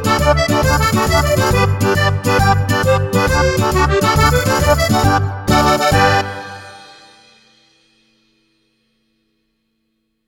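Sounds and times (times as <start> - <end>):
tarantella dance music: 0.0 - 6.9.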